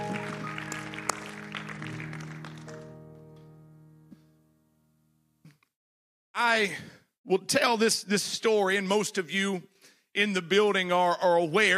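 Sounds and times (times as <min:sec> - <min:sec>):
audience clapping hands: 0:00.0 - 0:03.2
speech: 0:06.4 - 0:11.7.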